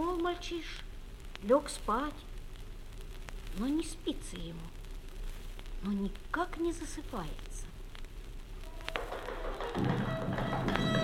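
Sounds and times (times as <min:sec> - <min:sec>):
speech: 0:00.3 - 0:02.3, 0:03.6 - 0:04.8, 0:05.8 - 0:07.5, 0:09.8 - 0:10.2
hoofbeats in street: 0:08.7 - 0:11.0.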